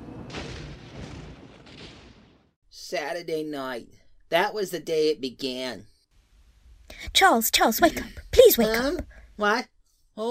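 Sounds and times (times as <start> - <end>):
rolling thunder: 0.0 - 2.5
speech: 2.9 - 5.9, 7.1 - 10.3.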